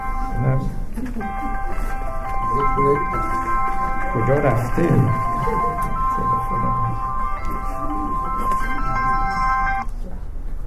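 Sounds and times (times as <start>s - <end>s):
mobile phone ringtone melody: 0.0s - 0.5s, 1.2s - 9.8s
low murmur of noise: 0.0s - 10.6s
speech: 2.8s - 3.5s, 4.2s - 5.5s
laughter: 5.3s - 6.0s.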